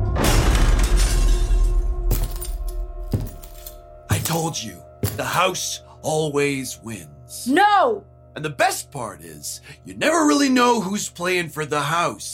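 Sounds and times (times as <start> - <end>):
door being smashed in: 0.2 - 3.5
speech: 4.5 - 12.3.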